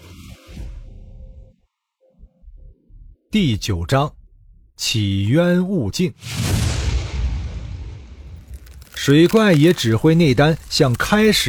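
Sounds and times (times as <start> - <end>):
speech: 3.3 - 4.2, 4.8 - 6.4, 9.0 - 11.4
energy explosion: 6.2 - 9.2.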